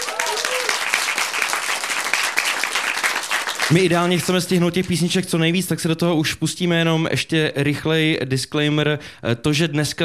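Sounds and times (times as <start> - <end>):
audience applause: 0.0 - 4.1
speech: 3.7 - 10.0.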